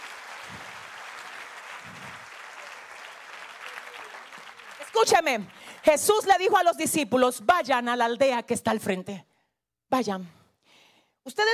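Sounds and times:
audience applause: 0:00.0 - 0:06.0
speech: 0:05.0 - 0:09.3, 0:09.9 - 0:10.4, 0:11.2 - 0:11.5.

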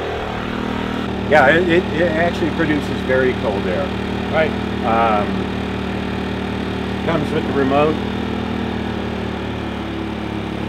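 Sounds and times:
portable generator running in economy mode: 0:00.0 - 0:10.6
speech: 0:01.3 - 0:05.6, 0:07.1 - 0:08.1.

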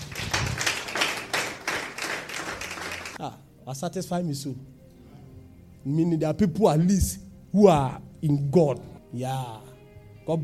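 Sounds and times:
audience clapping in a steady, rhythmic beat: 0:00.0 - 0:03.2
speech: 0:03.2 - 0:04.8, 0:05.8 - 0:09.7, 0:10.3 - 0:10.4.

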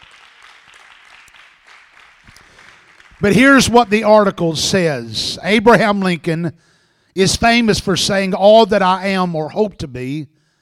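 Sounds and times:
audience applause: 0:00.0 - 0:03.8
speech: 0:03.2 - 0:10.4.

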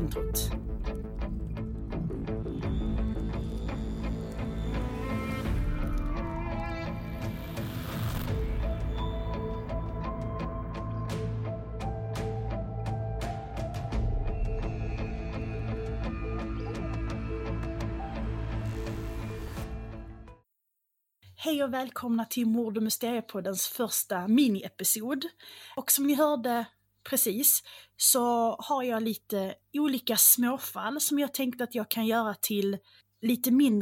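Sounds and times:
intro music for a murder and mystery podcast: 0:00.0 - 0:20.4
speech: 0:21.6 - 0:33.8.

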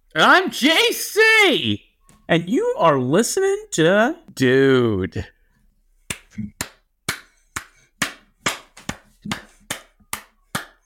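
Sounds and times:
speech: 0:00.1 - 0:05.4, 0:06.4 - 0:06.6
hand clapping: 0:06.1 - 0:10.8.

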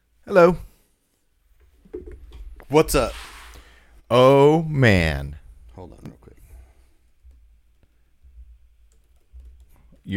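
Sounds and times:
speech: 0:00.2 - 0:00.6, 0:02.7 - 0:03.3, 0:04.1 - 0:06.2
typing on a computer keyboard: 0:08.8 - 0:10.1.

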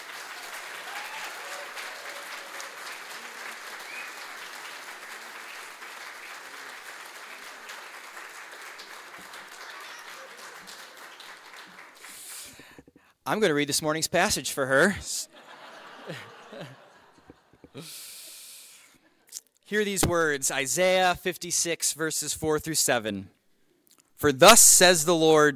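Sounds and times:
audience applause: 0:00.0 - 0:12.8
speech: 0:13.3 - 0:15.2, 0:19.7 - 0:23.4, 0:24.2 - 0:25.5
laughter: 0:15.3 - 0:17.9.

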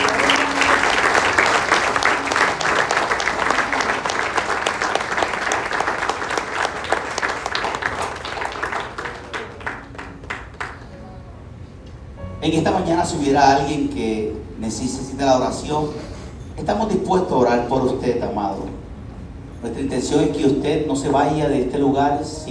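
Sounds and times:
audience applauding: 0:00.0 - 0:11.0
speech: 0:12.5 - 0:16.0, 0:16.6 - 0:18.8, 0:19.6 - 0:22.4.

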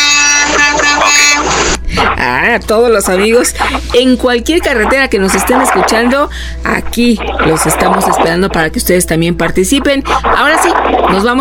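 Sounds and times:
truck horn blaring: 0:00.0 - 0:01.8
speech: 0:02.2 - 0:11.3.

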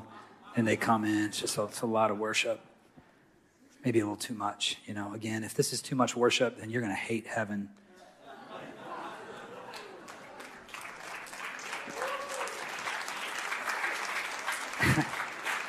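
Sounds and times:
laughter: 0:00.0 - 0:01.0, 0:07.9 - 0:11.0, 0:13.7 - 0:15.6
speech: 0:00.6 - 0:02.7, 0:03.8 - 0:07.8
church audience applauding: 0:09.4 - 0:15.6.

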